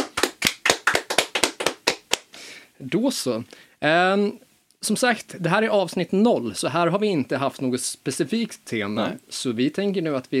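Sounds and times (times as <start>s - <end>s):
small applause hand clapping: 0.0s - 2.3s
speech: 2.8s - 10.3s.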